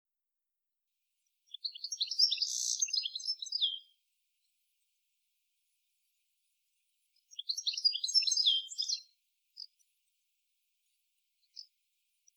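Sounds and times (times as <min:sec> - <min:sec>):
European goldfinch Carduelis carduelis tinkling twittering calls: 0:01.5 - 0:03.9, 0:07.2 - 0:09.8.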